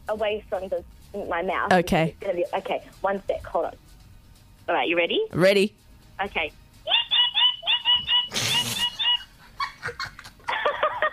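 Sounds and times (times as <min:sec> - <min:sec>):
speech: 0:00.1 - 0:03.9, 0:04.7 - 0:07.0
voice imitating a bird call: 0:06.9 - 0:09.2
laughter: 0:06.9 - 0:11.1.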